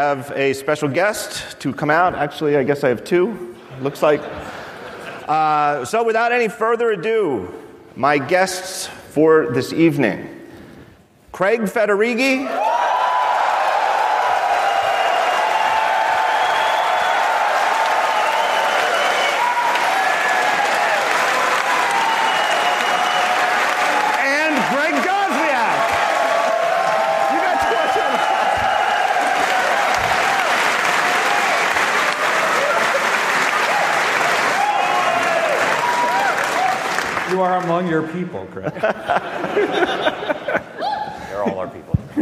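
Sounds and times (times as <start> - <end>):
speech: 0.0 - 4.6, 5.3 - 10.3, 11.3 - 12.8
laughter: 3.7 - 5.3, 38.6 - 42.2
audience applause: 12.6 - 37.7.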